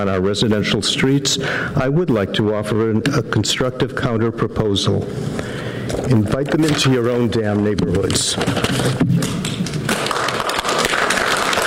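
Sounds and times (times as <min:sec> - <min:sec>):
speech: 0:00.0 - 0:09.4
crowd clapping: 0:09.2 - 0:11.6.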